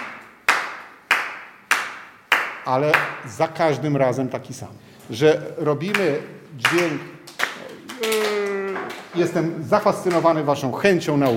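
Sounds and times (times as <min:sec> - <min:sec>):
flamenco palmas, percussive hand clapping: 0:00.0 - 0:03.2, 0:05.9 - 0:09.4, 0:10.0 - 0:10.4, 0:11.1 - 0:11.3
speech: 0:02.6 - 0:07.1, 0:08.0 - 0:08.5, 0:09.1 - 0:11.3.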